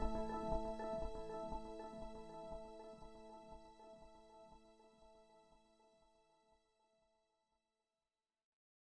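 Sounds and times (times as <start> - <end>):
resonator synth sound accelerating: 0.0 - 3.7.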